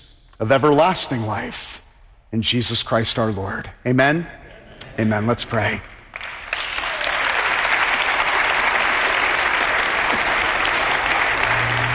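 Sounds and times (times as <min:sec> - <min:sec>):
speech: 0:00.4 - 0:04.4, 0:05.0 - 0:05.9
audience applause: 0:06.1 - 0:11.9.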